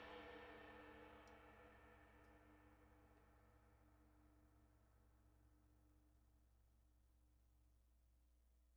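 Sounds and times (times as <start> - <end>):
Zildjian 22 Renaissance cymbal: 0.0 - 4.9.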